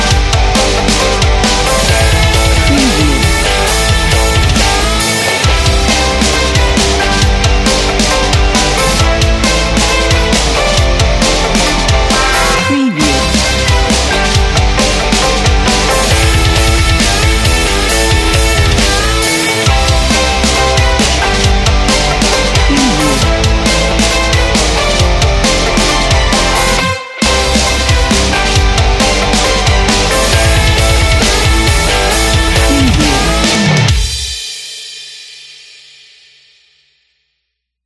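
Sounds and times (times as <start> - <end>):
upbeat punk rock with trumpets: 0.0 - 34.3.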